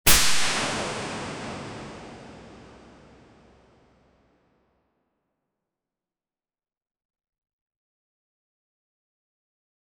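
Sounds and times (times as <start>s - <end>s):
light flash sound effect: 0.1s - 3.5s.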